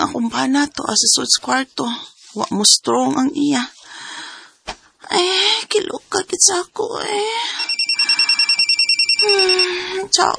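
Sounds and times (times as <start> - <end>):
speech: 0.1 - 3.8, 5.1 - 7.6, 9.2 - 10.3
phone ringing with an incoming call: 7.5 - 10.0.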